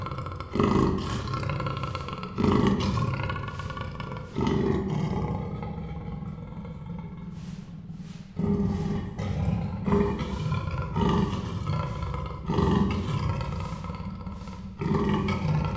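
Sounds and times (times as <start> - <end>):
captive Persian leopard snoring in a zoo in Miskolc, Hungary: 0.0 - 15.7.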